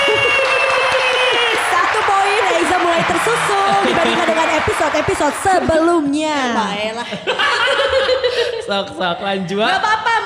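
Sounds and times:
laughter: 0.0 - 5.6, 6.5 - 9.0
crowd clapping: 0.0 - 6.2
voices cheering: 0.0 - 6.2
speech: 4.8 - 10.2.

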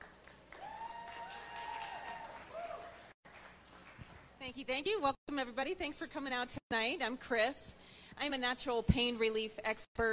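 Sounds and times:
faint audience applause at a live talk evening: 0.0 - 4.4
drawn-out tonal cheer: 0.5 - 3.2
speech: 4.5 - 10.1.

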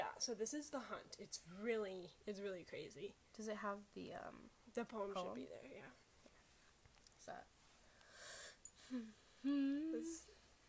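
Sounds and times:
speech: 0.2 - 6.0, 7.2 - 7.6, 8.9 - 10.4
deep wheezy inhale with a thin whistling tone: 7.9 - 9.5.

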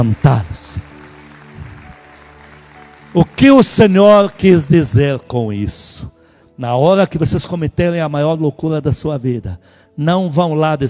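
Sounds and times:
speech: 0.0 - 0.9, 3.1 - 10.8
audience applauding: 0.0 - 4.7.

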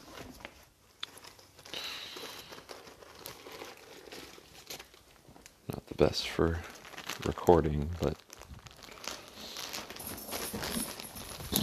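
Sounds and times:
cough drop wrapper crinkling as it is unwrapped: 0.0 - 11.6
speech: 6.0 - 8.2.

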